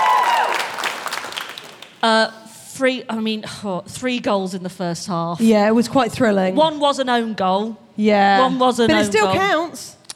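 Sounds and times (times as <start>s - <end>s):
crowd cheering and clapping: 0.0s - 2.0s
speech: 2.0s - 10.0s.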